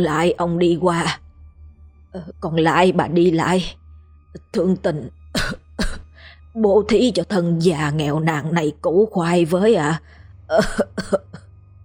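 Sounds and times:
speech: 0.0s - 1.2s, 2.1s - 3.8s, 4.4s - 5.2s, 6.6s - 11.4s
old woman's choked cough: 5.4s - 6.2s, 10.6s - 11.4s.

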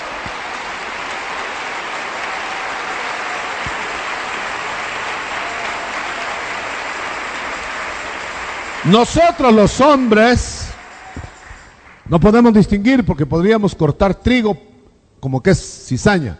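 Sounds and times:
church congregation applauding during a sermon: 0.0s - 12.7s
speech: 8.8s - 10.6s, 12.1s - 16.3s.

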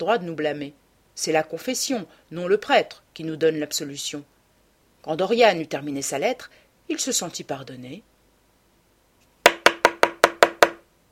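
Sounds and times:
speech: 0.0s - 4.3s, 5.0s - 8.1s
knocking on a door: 9.4s - 10.8s.

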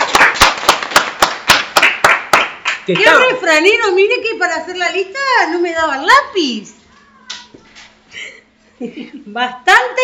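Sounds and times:
studio audience clapping during a radio program: 0.0s - 3.4s
speech: 2.9s - 6.8s, 8.8s - 10.0s.

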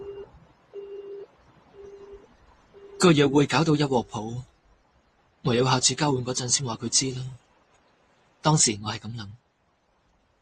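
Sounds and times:
voicemail telephone beeps from a 1987 Cantonese City Hunter cartoon: 0.0s - 3.2s
speech: 3.0s - 4.5s, 5.4s - 7.4s, 8.4s - 9.4s.

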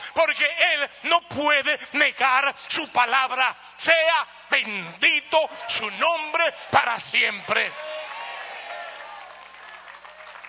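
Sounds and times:
speech: 0.2s - 7.9s
thin half-hearted applause from a church congregation: 7.4s - 10.4s.

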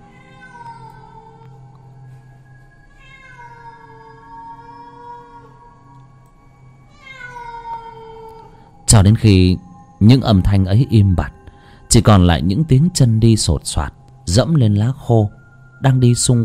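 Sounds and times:
wild cats yowling loudly in the forest: 0.0s - 1.8s, 2.9s - 8.8s
speech: 8.9s - 16.4s.

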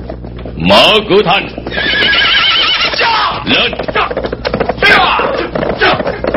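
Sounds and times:
speech: 0.6s - 2.2s, 3.5s - 4.3s
horse neighing: 1.6s - 6.3s.

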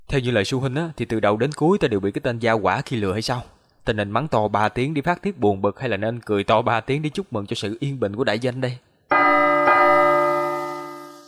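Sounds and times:
speech: 0.1s - 9.2s
large bell tolling from the council hall: 9.1s - 11.2s.

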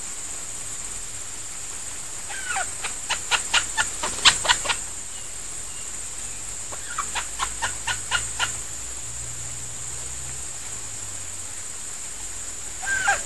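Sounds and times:
female junglefowl decoy bird squeaking and clucking: 2.3s - 4.9s, 6.7s - 8.7s, 12.8s - 13.2s.

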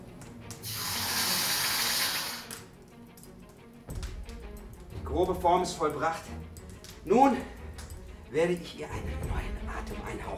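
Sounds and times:
hot forged sword metal hissing as dunked into water: 0.5s - 2.8s
speech: 5.2s - 6.4s, 7.0s - 7.6s, 8.3s - 10.3s.

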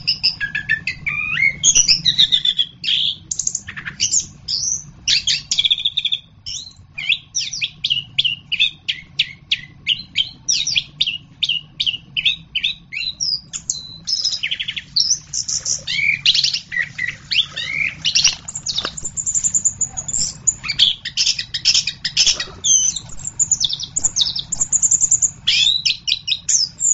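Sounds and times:
faint low hum: 0.0s - 26.9s
orange-headed thrush singing: 13.8s - 26.9s.

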